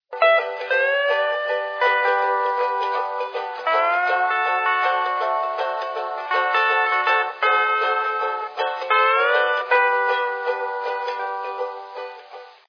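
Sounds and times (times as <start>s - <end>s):
music: 0.1s - 12.6s.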